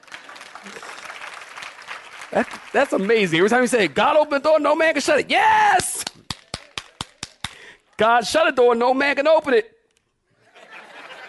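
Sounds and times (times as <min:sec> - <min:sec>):
audience clapping: 0:00.0 - 0:04.6, 0:05.8 - 0:07.8
speech: 0:00.6 - 0:01.0, 0:02.3 - 0:06.0, 0:08.0 - 0:09.8
laughter: 0:10.4 - 0:11.2.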